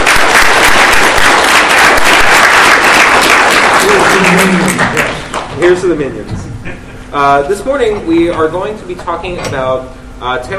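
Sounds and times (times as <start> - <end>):
audience applause: 0.0 - 5.5
speech: 5.7 - 10.5.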